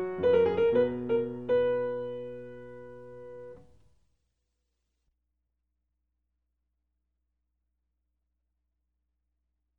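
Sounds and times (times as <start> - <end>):
piano playing a gigue: 0.0 - 3.6.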